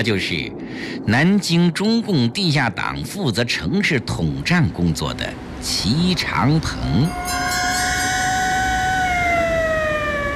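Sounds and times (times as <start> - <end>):
speech: 0.0 - 7.7
police car sirens approaching and passing: 6.7 - 10.3.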